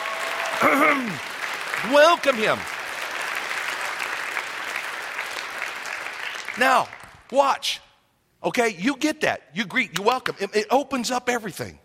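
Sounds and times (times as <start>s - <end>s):
audience clapping hands: 0.0s - 7.4s
speech: 0.6s - 2.7s, 6.6s - 7.8s, 8.4s - 11.8s.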